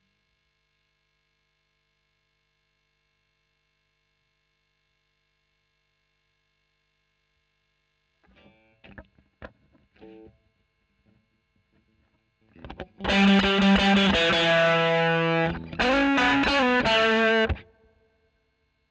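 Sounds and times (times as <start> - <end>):
overdriven electric guitar recorded with a Royer microphone: 8.3 - 10.4, 12.4 - 17.7.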